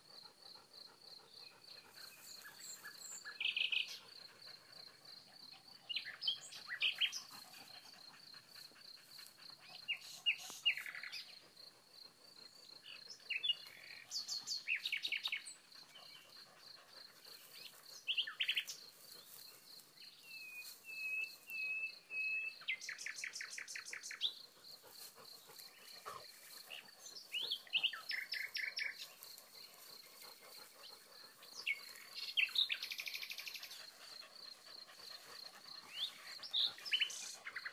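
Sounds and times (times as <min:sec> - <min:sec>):
nightingale tweeting to its neighbours: 0:02.2 - 0:04.1, 0:05.9 - 0:07.3, 0:12.8 - 0:16.3, 0:17.5 - 0:19.4, 0:20.0 - 0:24.4, 0:25.7 - 0:29.2, 0:31.5 - 0:33.7, 0:35.8 - 0:37.7.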